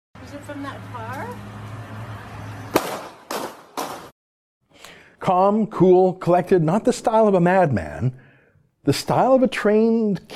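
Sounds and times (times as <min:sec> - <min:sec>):
speech: 0:00.3 - 0:01.6, 0:05.2 - 0:08.2, 0:08.8 - 0:10.3
noise: 0:02.0 - 0:10.3
handgun shots: 0:02.7 - 0:04.1.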